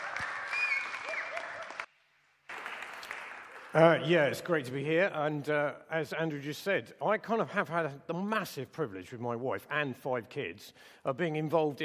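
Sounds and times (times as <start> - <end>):
applause welcoming a guest speaker: 0.0 - 4.0
speech: 3.7 - 11.8.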